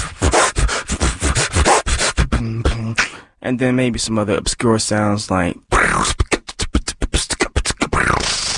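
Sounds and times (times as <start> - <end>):
human beatboxer vocally imitating a turntable scratch: 0.0 - 3.2, 5.7 - 8.5
speech: 3.5 - 6.0.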